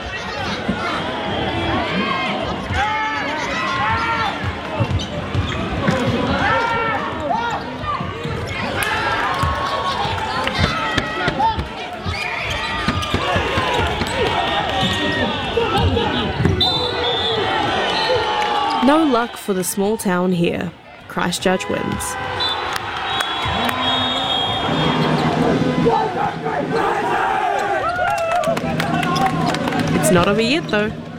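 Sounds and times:
crowd chatter and shouting: 0:00.0 - 0:31.1
sneakers squeaking: 0:00.0 - 0:31.1
basketball bouncing in a basketball game: 0:03.7 - 0:16.8, 0:21.0 - 0:25.6
speech: 0:19.2 - 0:22.4, 0:30.1 - 0:31.1.

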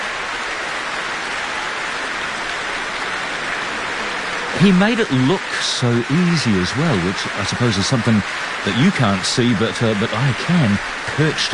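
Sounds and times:
applause: 0:00.0 - 0:11.5
cheering: 0:03.3 - 0:11.5
speech: 0:04.6 - 0:11.5.

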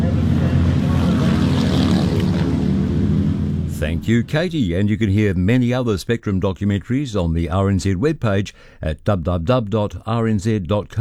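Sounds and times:
speedway motorbikes racing at Ruapuna Speedway in Christchurch: 0:00.0 - 0:04.5
speech: 0:03.8 - 0:11.0.

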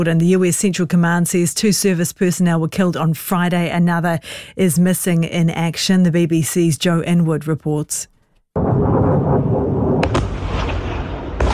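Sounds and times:
speech: 0:00.0 - 0:09.3
missile and drone attack heavy rumble: 0:08.6 - 0:11.5
missile and drone attack loud blasts: 0:08.6 - 0:11.5.

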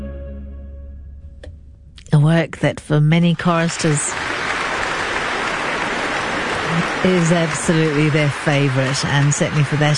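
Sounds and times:
speech: 0:02.3 - 0:04.3, 0:06.8 - 0:09.9
concert audience applauding soloists and chorus after a choral performance: 0:03.4 - 0:09.9.

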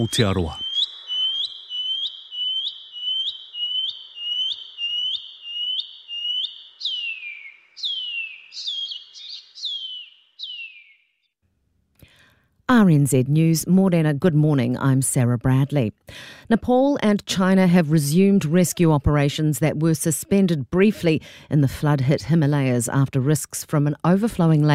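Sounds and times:
speech: 0:00.0 - 0:00.6, 0:12.8 - 0:24.7
shining cuckoo call: 0:00.0 - 0:10.9.

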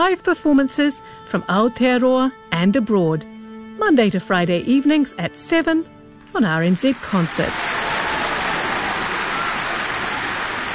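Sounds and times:
speech: 0:00.0 - 0:07.8
crowd applauding: 0:06.9 - 0:10.7.

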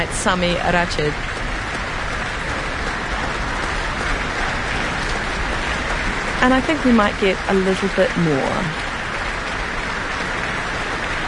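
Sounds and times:
audience and orchestra applauding: 0:00.0 - 0:11.2
speech: 0:00.2 - 0:01.4, 0:06.4 - 0:08.8.

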